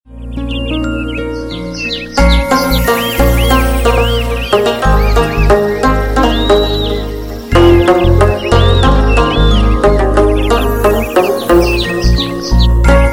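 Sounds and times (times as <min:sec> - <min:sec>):
morning tone ringtone melody: 0:00.6 - 0:13.1.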